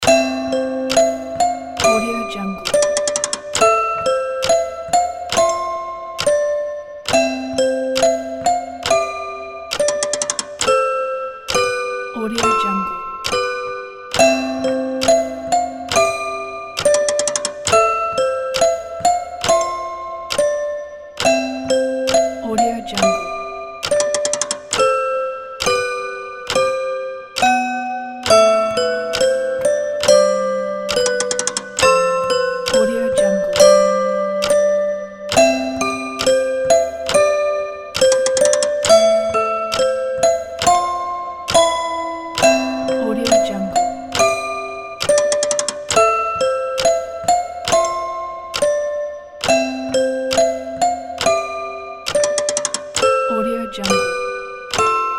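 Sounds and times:
music box: 0.0s - 55.1s.

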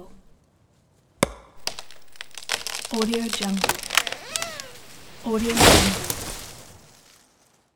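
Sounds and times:
tree being chopped down: 1.2s - 7.2s.

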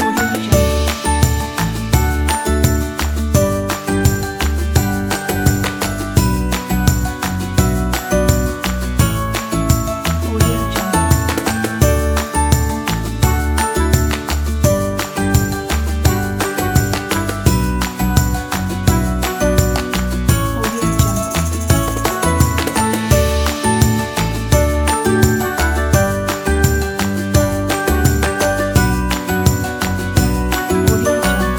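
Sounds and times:
happy upbeat ukulele music: 0.0s - 31.5s.

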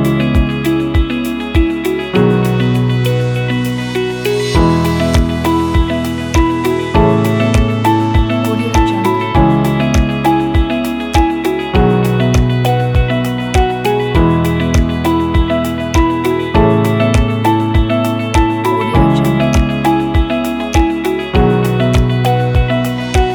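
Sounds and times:
calm corporate music: 0.0s - 23.3s.

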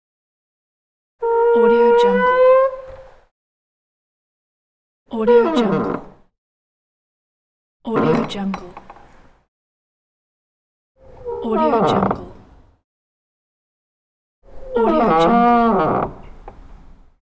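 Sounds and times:
door squeaking: 1.2s - 3.1s, 5.3s - 6.2s, 8.0s - 8.9s, 11.0s - 12.5s, 14.6s - 16.6s.

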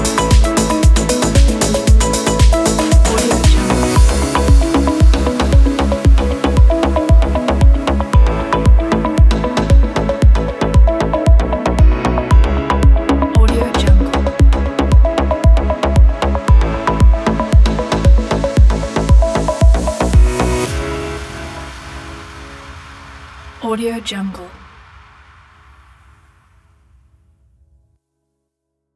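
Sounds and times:
scientific innovative technology music: 0.0s - 21.1s.

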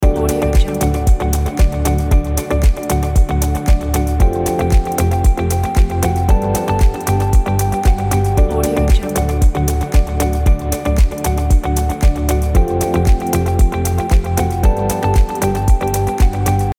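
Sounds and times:
technology electronic music loop: 0.0s - 16.7s.

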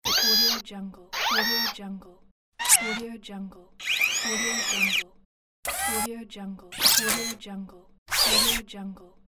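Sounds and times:
robot movements: 0.0s - 0.6s, 1.2s - 1.8s, 2.6s - 3.0s, 3.8s - 5.0s, 5.7s - 6.1s, 6.7s - 7.4s, 8.1s - 8.6s.

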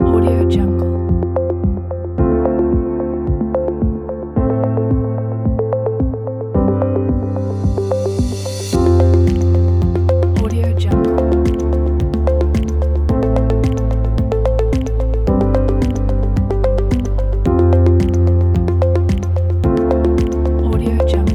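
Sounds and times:
science ambient music: 0.0s - 21.3s.

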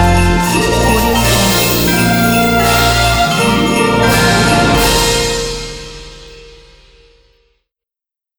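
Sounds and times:
Christmas ident jingle: 0.4s - 6.7s.

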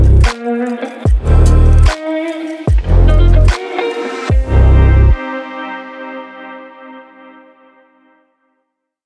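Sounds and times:
stylish fashion rock beat: 0.0s - 5.8s.

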